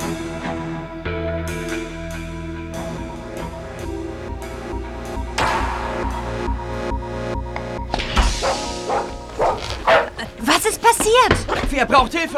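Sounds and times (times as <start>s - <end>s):
humming tonal background: 0.0s - 12.2s
dachshund barking: 8.4s - 10.4s
speech: 11.8s - 12.3s.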